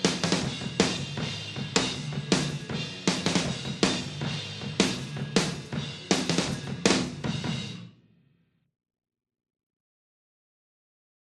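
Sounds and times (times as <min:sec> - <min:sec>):
drums: 0:00.0 - 0:08.3.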